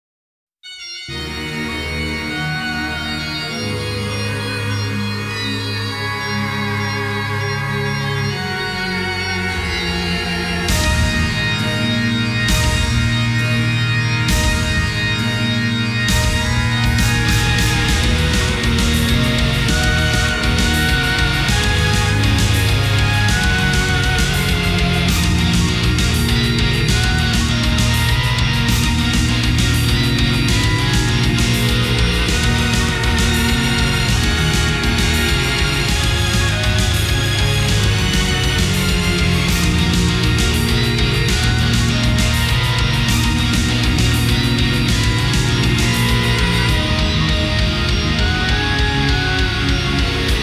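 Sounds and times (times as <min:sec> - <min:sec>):
guitar remix: 0:00.8 - 0:50.4.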